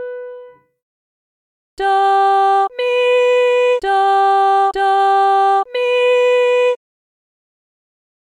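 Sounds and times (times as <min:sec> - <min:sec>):
person singing medium solfa training exercise: 0:01.8 - 0:06.8.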